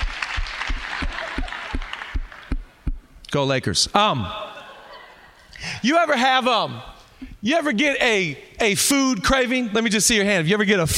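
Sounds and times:
church congregation clapping in thanks during a service: 0.0s - 3.0s
soft noise: 0.0s - 10.9s
laughter: 0.7s - 2.0s, 4.2s - 5.6s
speech: 3.3s - 4.4s, 5.8s - 10.9s.

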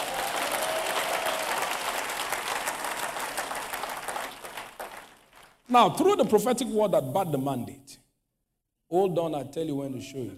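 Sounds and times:
audience clapping hands: 0.0s - 5.7s
speech: 5.7s - 8.0s, 8.9s - 10.3s.

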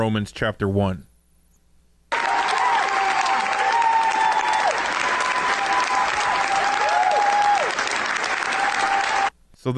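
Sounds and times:
speech: 0.0s - 1.1s
large crowd applauding: 2.1s - 9.3s.

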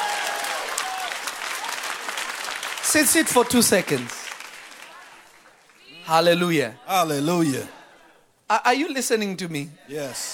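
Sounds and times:
audience clapping hands: 0.0s - 6.4s
speech: 2.9s - 4.2s, 6.1s - 7.8s, 8.5s - 10.3s.

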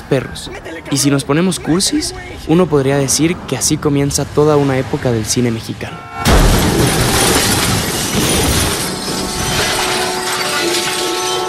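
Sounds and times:
speech: 0.1s - 6.2s
head-on car crash: 6.1s - 11.4s
glass shattering: 6.2s - 11.4s.

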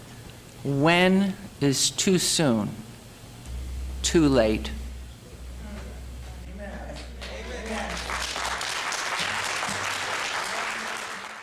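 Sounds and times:
speech: 0.6s - 2.9s, 4.0s - 4.8s
audience applause in a meeting room: 7.2s - 11.4s.

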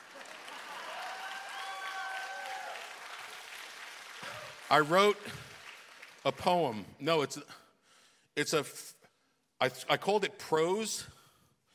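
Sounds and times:
a few people clapping: 0.0s - 6.8s
speech: 4.2s - 5.5s, 6.2s - 7.6s, 8.4s - 9.0s, 9.6s - 11.1s.

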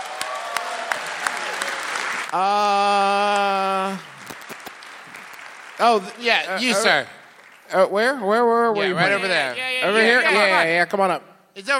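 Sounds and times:
audience applause: 0.0s - 7.8s
speech: 2.3s - 4.1s, 5.8s - 11.7s.

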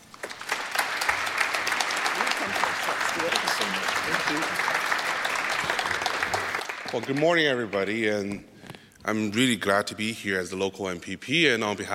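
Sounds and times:
audience applause welcoming a local Ontario MPP at an OMDC event: 0.0s - 8.0s
speech: 3.2s - 4.8s, 6.9s - 8.5s, 9.1s - 11.9s.

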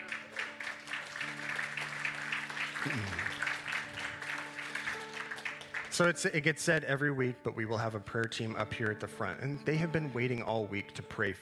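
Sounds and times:
audience applause: 0.0s - 6.2s
sustained keyboard chords: 0.0s - 10.7s
speech: 2.8s - 3.3s, 6.0s - 11.3s.

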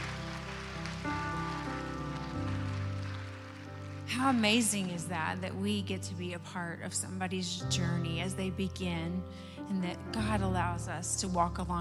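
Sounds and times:
audience applauding: 0.0s - 5.4s
sustained keyboard chords: 0.0s - 11.7s
speech: 4.1s - 11.7s.

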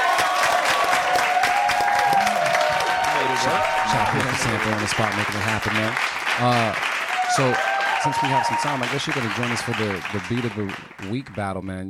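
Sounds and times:
whoops and whistle-like cheer: 0.0s - 4.4s, 7.0s - 10.0s
audience clapping: 0.0s - 11.6s
speech: 3.4s - 11.8s.

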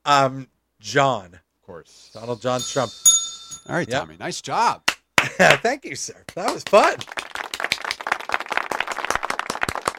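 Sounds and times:
speech: 0.0s - 7.3s
applause: 6.3s - 9.9s.

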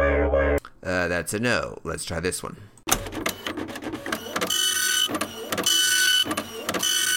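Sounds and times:
speech: 0.1s - 2.7s
dot matrix printer printing: 2.9s - 7.1s.

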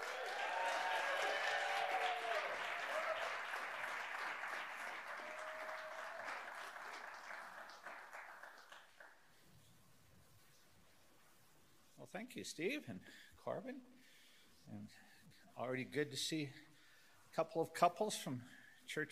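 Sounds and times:
audience applause: 0.0s - 9.2s
speech: 12.1s - 13.9s, 14.7s - 16.7s, 17.4s - 19.1s.

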